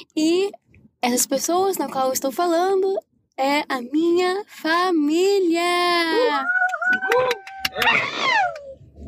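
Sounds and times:
speech: 0.2s - 8.6s
child screaming: 6.1s - 8.8s.

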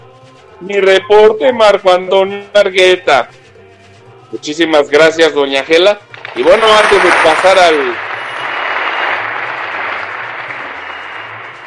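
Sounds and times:
speech: 0.6s - 3.4s, 4.3s - 8.0s
audience applause: 6.2s - 11.6s.

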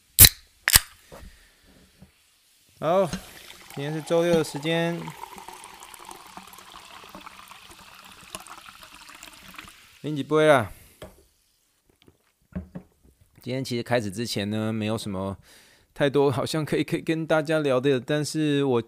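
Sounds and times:
sparkling water opened and poured: 2.1s - 10.6s
speech: 2.8s - 5.2s, 10.0s - 10.8s, 13.5s - 18.8s.

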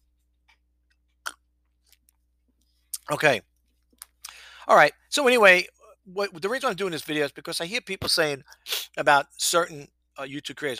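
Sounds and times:
person taking a swig of water: 1.2s - 2.0s
speech: 3.1s - 3.5s, 4.7s - 10.7s.

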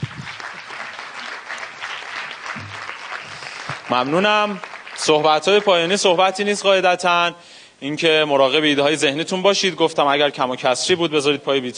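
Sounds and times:
audience applause: 0.0s - 6.2s
speech: 3.9s - 11.7s.

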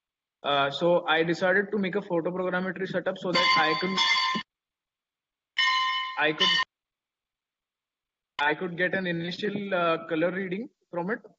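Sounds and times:
speech: 0.4s - 4.4s, 6.2s - 6.7s, 8.4s - 11.3s
electronic bell tone: 3.3s - 4.4s, 5.6s - 6.7s.

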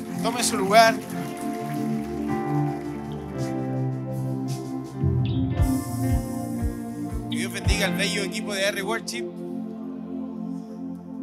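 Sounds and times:
crowd applause: 0.0s - 4.6s
sustained musical tones: 0.0s - 11.2s
speech: 0.2s - 1.5s, 7.8s - 9.4s.

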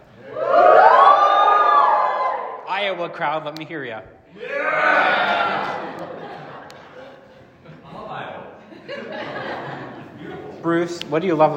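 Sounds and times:
audience cheering: 0.2s - 2.8s, 4.4s - 7.0s
speech: 3.0s - 5.1s, 10.6s - 11.5s
laughter: 4.3s - 10.9s.

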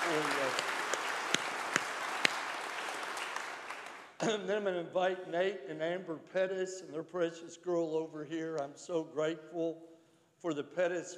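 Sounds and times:
audience applause: 0.0s - 4.2s
speech: 4.2s - 11.1s.

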